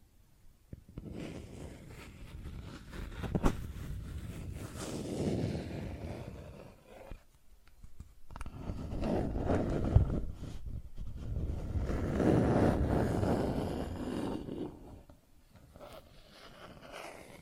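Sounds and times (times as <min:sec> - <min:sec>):
plastic objects scratched and rubbed: 0:01.0 - 0:17.4.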